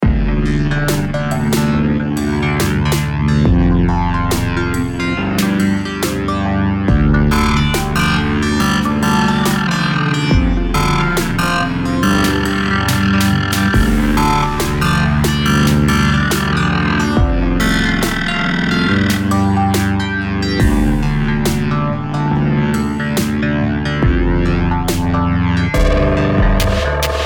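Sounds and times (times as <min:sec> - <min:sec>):
heavy song: 0:00.0 - 0:27.2.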